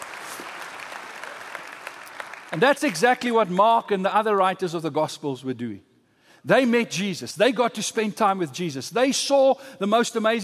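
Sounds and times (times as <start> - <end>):
audience applause: 0.0 - 3.0
speech: 2.5 - 10.4.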